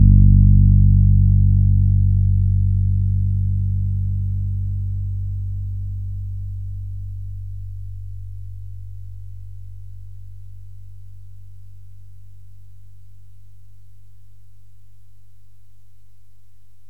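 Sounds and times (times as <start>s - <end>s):
low D string: 0.0s - 11.2s.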